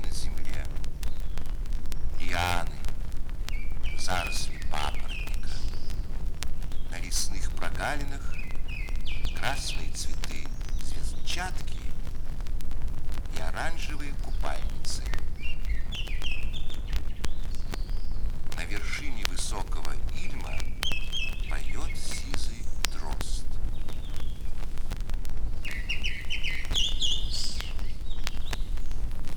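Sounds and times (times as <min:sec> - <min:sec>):
black-naped oriole song of fluted whistled phrases near a lake in Sikhote-Alin forest: 0:00.0 - 0:12.4, 0:13.2 - 0:29.3.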